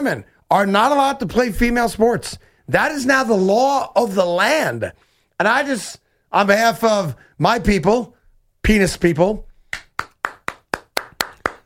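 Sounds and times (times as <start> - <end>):
speech: 0.0 - 9.5
golf clap: 9.7 - 11.6.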